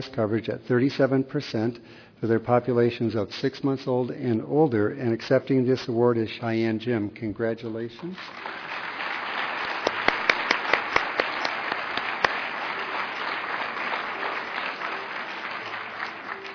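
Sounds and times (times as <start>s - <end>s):
speech: 0.0s - 8.6s
round of applause for IHS Award recipients: 8.2s - 16.5s.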